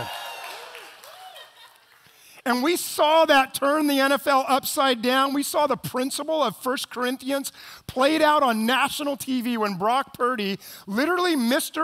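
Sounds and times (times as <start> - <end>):
audience whooping: 0.0 - 1.8
audience clapping: 0.0 - 2.4
speech: 2.5 - 11.8.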